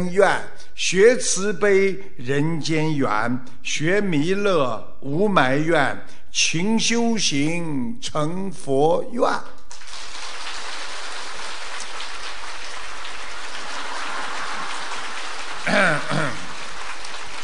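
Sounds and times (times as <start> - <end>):
speech: 0.0 - 9.6
audience applause: 9.7 - 17.4.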